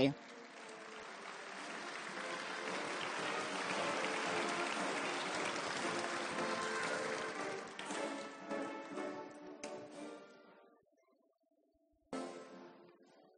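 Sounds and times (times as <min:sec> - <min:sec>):
audience applause: 0:00.0 - 0:09.0.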